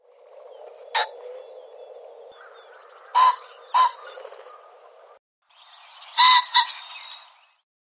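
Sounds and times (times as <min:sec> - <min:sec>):
Red-necked Phalarope calling: 0:00.4 - 0:04.3, 0:06.2 - 0:07.1.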